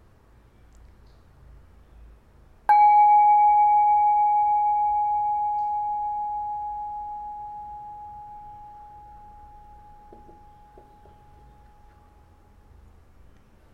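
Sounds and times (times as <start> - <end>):
meditation bell ringing: 2.7 - 12.6.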